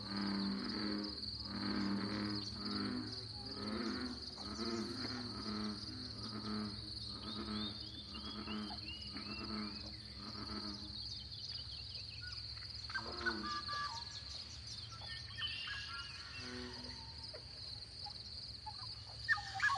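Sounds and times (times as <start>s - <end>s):
steady high insect-like whine: 0.0s - 19.7s
bird chirps and descending trills in a pothole coulee in Eastern Washington: 7.0s - 19.7s.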